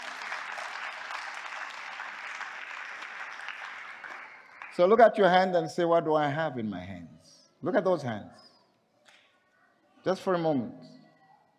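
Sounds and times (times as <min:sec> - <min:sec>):
audience clapping: 0:00.0 - 0:05.3
speech: 0:04.8 - 0:08.4, 0:10.0 - 0:10.9.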